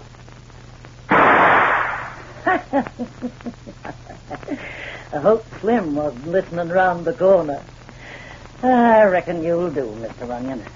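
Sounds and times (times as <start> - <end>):
gunshot at a door lock: 1.1 - 2.3
speech: 2.5 - 7.8, 8.6 - 10.7.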